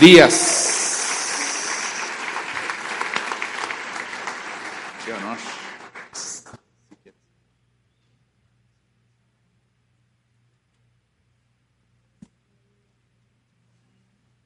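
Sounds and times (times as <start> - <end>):
speech: 0.0 - 0.5
audience applause: 0.0 - 6.4.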